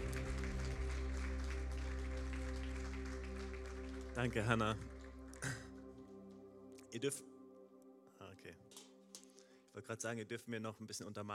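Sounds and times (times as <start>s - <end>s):
audience applause: 0.0s - 5.8s
sustained low musical drone: 0.0s - 9.6s
speech: 4.2s - 5.6s, 6.9s - 7.3s, 8.4s - 8.8s, 9.8s - 11.3s.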